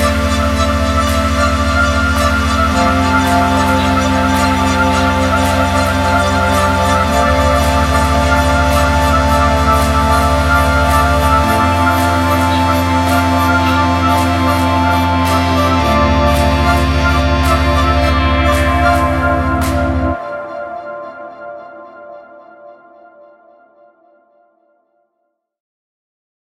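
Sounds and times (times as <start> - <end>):
IK Multimedia UNO Synth: 0.0 - 24.8.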